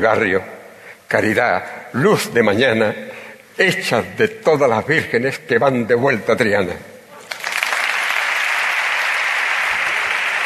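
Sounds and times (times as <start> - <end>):
speech: 0.0 - 6.9
ovation at the Seville Holy Week proclamation: 7.2 - 10.4.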